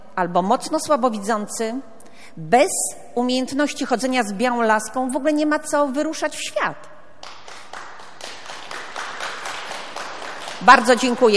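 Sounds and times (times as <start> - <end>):
speech: 0.2 - 6.9, 10.6 - 11.3
audience clapping: 7.2 - 11.3.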